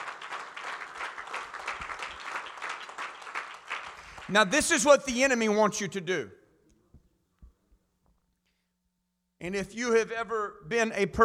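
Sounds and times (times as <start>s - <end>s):
church congregation clapping hands: 0.0s - 5.5s
speech: 4.3s - 6.4s, 9.4s - 11.2s.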